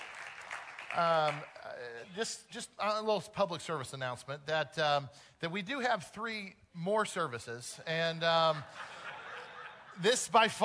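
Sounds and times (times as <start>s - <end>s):
audience clapping: 0.0s - 1.6s
speech: 0.9s - 9.0s, 10.0s - 10.6s
laughter: 8.4s - 10.6s.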